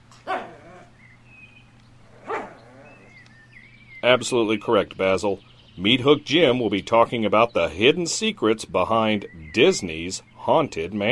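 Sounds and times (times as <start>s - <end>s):
low steady hum: 0.0s - 11.1s
dog barking: 0.3s - 0.9s, 2.2s - 3.1s
speech: 4.0s - 11.1s.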